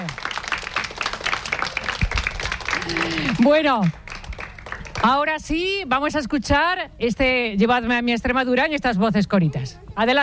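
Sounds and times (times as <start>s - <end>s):
audience applause: 0.0s - 5.2s
speech: 2.9s - 4.0s, 5.0s - 10.2s.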